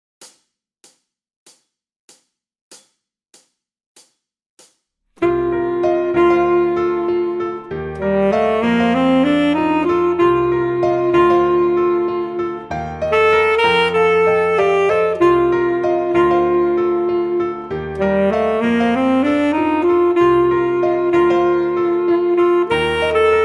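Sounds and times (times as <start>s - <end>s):
soul music with full saxophone: 5.2s - 23.4s.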